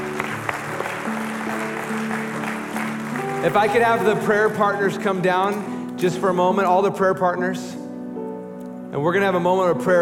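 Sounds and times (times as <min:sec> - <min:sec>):
crowd clapping and applauding continuously: 0:00.0 - 0:05.6
speech: 0:03.4 - 0:07.8, 0:08.9 - 0:10.0.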